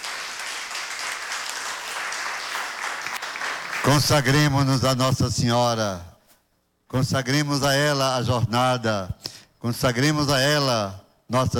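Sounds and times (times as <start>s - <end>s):
audience clapping hands: 0.0s - 4.5s
speech: 3.8s - 6.1s, 6.9s - 11.5s.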